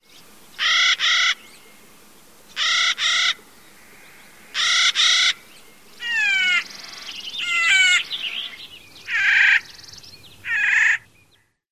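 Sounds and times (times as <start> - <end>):
calls: 2.6 - 11.1.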